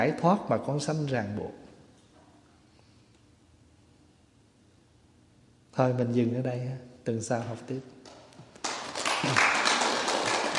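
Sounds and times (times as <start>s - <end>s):
speech: 0.0s - 1.6s, 5.8s - 8.0s
applause from listeners after a Dharma talk: 8.6s - 10.5s.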